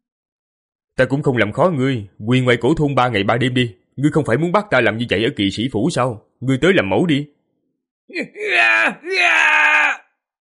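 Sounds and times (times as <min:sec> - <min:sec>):
speech: 0:01.0 - 0:07.4, 0:08.1 - 0:09.7
man crying out loudly while struggling violently: 0:08.1 - 0:10.0.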